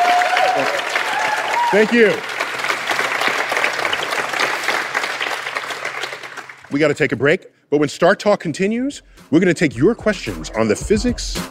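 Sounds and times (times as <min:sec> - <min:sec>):
StarTalk studio audience applauding for Andy Weir: 0:00.0 - 0:06.8
speech: 0:01.7 - 0:02.3, 0:06.7 - 0:11.4.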